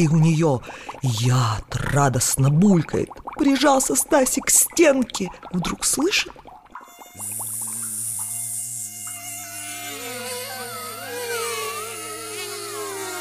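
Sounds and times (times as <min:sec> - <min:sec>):
speech: 0:00.0 - 0:06.4
huge mosquitoes flying and buzzing: 0:06.8 - 0:13.2.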